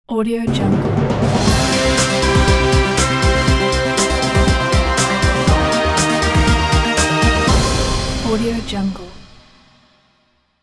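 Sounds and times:
sport TV logo jingle: 0.5s - 9.6s.

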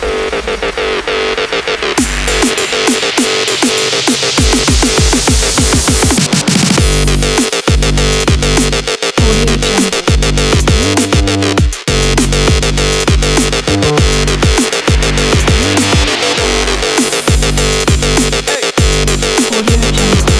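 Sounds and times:
trap beat: 0.1s - 20.3s.

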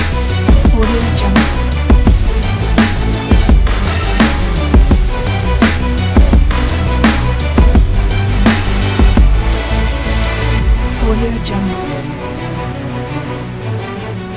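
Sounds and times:
epic violin over hip hop beat: 0.0s - 13.9s.

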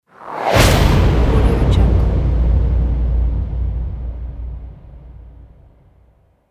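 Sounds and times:
cinematic hit: 0.2s - 6.2s.

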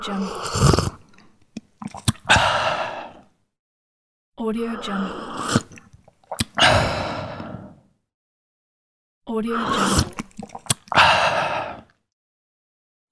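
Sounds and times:
person drinking coffee: 0.3s - 3.3s, 5.0s - 7.8s, 9.7s - 11.9s.

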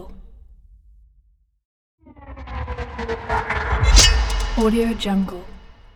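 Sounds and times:
trailer video hybrid hit: 2.1s - 5.9s.

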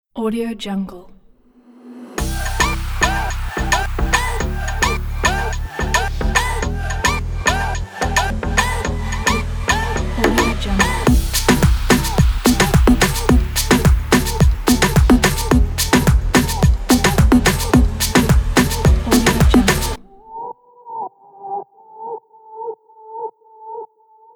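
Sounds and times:
summer dance music logo jingle: 2.2s - 20.0s.

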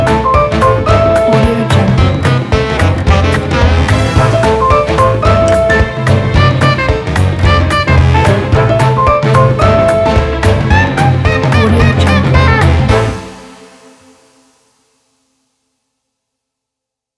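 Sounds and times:
funny jazz: 0.0s - 13.3s.

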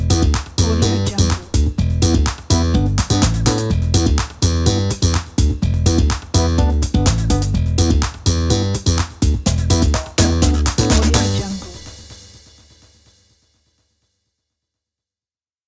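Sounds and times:
slap bass groove: 0.0s - 12.0s.

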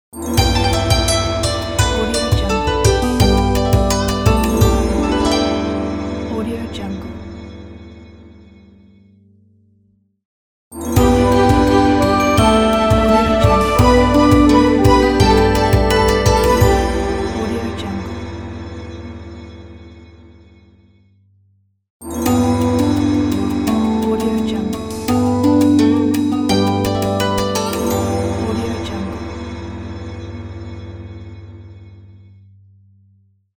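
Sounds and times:
Chinese-style intro logo music: 0.2s - 6.4s, 10.8s - 19.0s, 22.0s - 31.4s.

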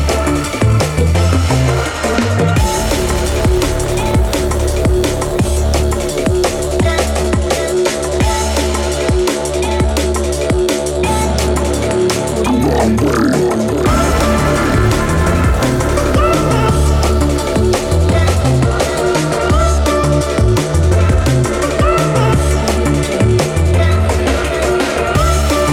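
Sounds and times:
drum and bass music: 0.0s - 25.7s.

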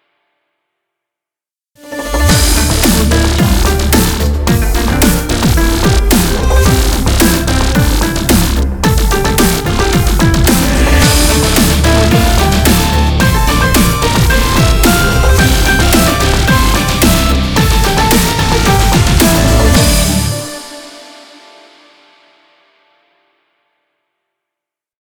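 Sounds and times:
Chinese dubstep logo music: 1.8s - 21.8s.

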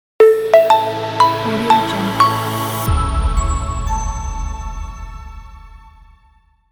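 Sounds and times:
corporate logo jingle: 0.2s - 3.6s.

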